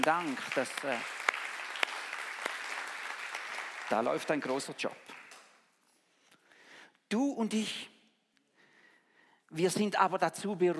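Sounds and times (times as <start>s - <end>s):
speech: 0.0s - 1.2s, 3.9s - 5.1s, 7.1s - 7.9s, 9.5s - 10.7s
audience applause: 0.0s - 5.6s.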